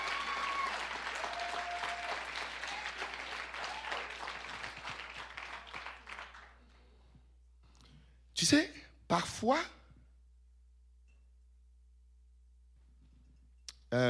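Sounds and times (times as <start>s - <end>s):
congregation applauding during a church sermon: 0.0s - 6.8s
speech: 8.4s - 9.8s.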